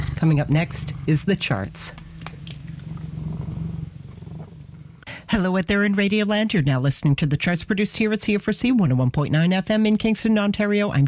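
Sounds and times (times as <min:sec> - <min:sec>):
cat purring: 0:00.0 - 0:05.5
speech: 0:00.2 - 0:02.0, 0:05.4 - 0:11.0.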